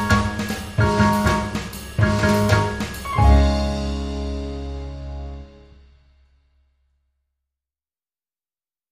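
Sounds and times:
jazzy music: 0.0 - 6.0.

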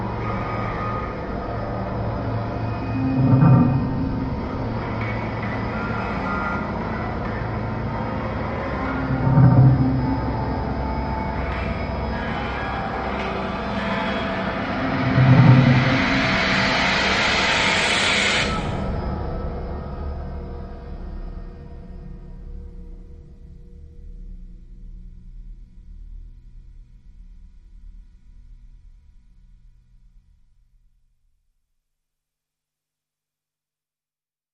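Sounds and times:
drones: 0.0 - 23.4.

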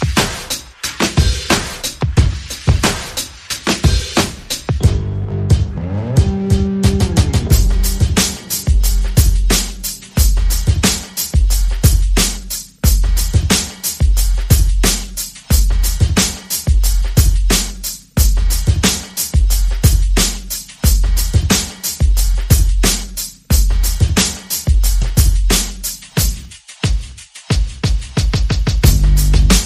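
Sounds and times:
percussion: 0.0 - 29.6
bass: 3.9 - 26.5, 28.8 - 29.6.

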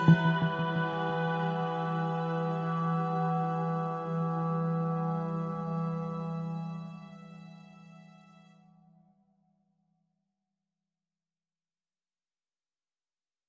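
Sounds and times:
vocals: 0.0 - 6.8
drone: 0.0 - 7.6.

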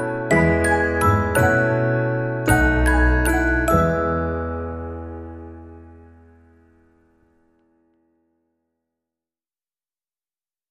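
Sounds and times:
light version melody: 0.0 - 6.6
piano: 0.0 - 8.3.

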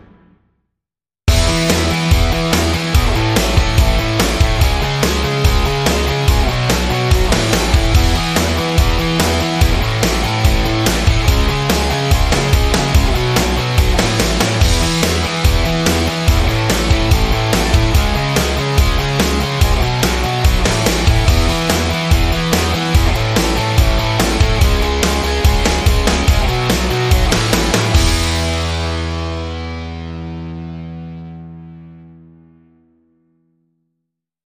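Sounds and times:
upbeat music without lead guitar or synth: 1.3 - 29.9.

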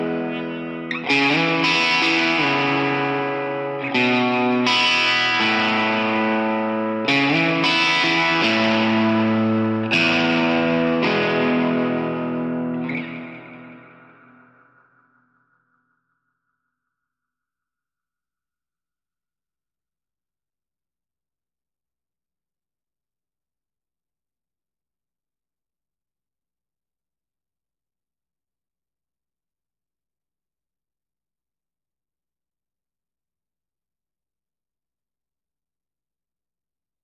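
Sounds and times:
solo guitar: 0.0 - 16.2.

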